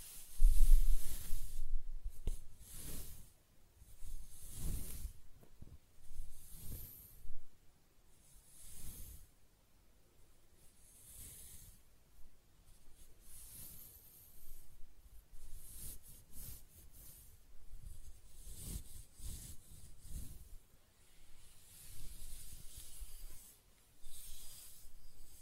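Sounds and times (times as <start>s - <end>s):
hair scratching and brushing strokes: 0.0s - 5.4s, 6.1s - 7.2s, 15.4s - 25.3s.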